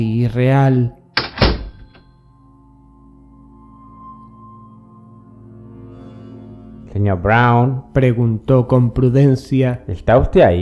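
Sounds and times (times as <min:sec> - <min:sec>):
speech: 0:00.0 - 0:01.0, 0:07.0 - 0:10.5
shop front door slamming shut: 0:01.2 - 0:02.0.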